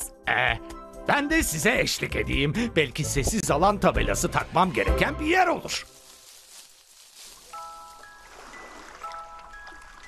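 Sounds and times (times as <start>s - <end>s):
speech: 0.3s - 6.0s
ocean waves: 7.6s - 10.0s.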